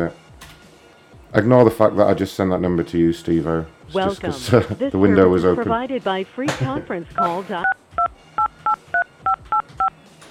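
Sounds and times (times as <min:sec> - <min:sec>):
speech: 0:00.0 - 0:00.2, 0:01.3 - 0:07.8
telephone keypad DTMF tones dialing a conference call number: 0:08.4 - 0:10.2.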